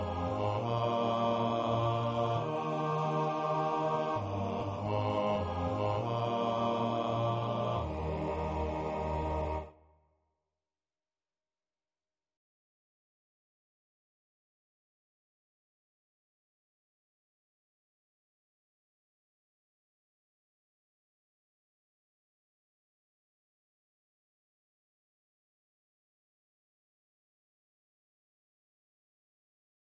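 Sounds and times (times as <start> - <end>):
bass voices singing in a TTBB male choir: 0.0 - 9.7.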